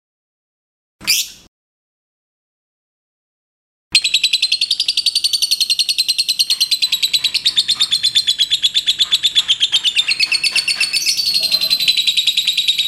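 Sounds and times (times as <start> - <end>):
liontin lovebird pouring out shrill buzzy pulses: 4.0 - 12.8.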